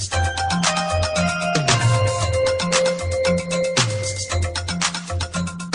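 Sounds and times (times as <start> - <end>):
Yamaha DX7 synthesizer music: 0.1 - 5.6.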